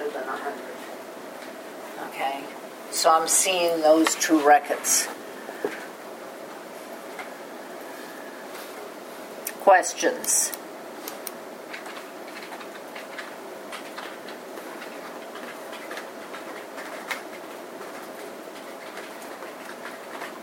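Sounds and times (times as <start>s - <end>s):
speech: 2.4s - 5.8s, 9.6s - 10.6s
computer keyboard typing: 10.2s - 20.4s.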